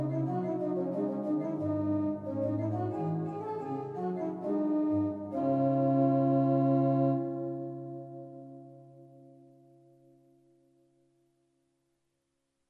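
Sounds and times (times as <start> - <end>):
organ: 0.0 - 8.8.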